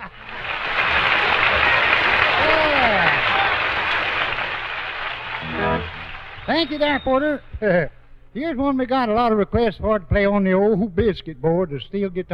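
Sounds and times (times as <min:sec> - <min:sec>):
audience applause welcoming a performer at the Grand Ole Opry: 0:00.0 - 0:07.6
speech: 0:06.6 - 0:12.3.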